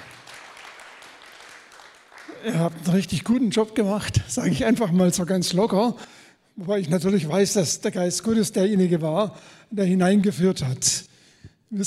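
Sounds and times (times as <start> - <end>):
applause for the worship team: 0.0 - 3.2
speech: 2.4 - 11.1.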